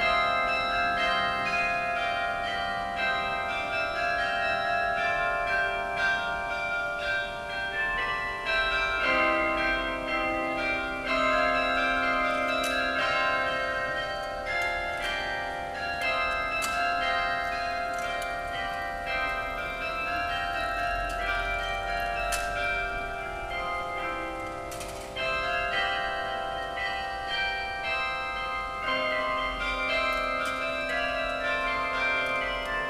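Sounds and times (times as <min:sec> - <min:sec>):
carillon concert: 0:00.0 - 0:32.8.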